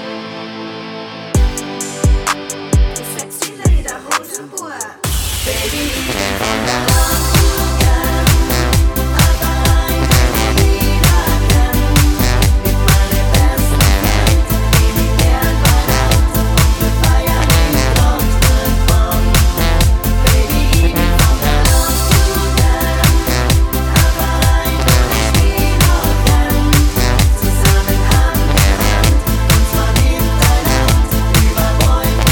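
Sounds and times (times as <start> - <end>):
choir singing in C major: 3.0 - 32.2.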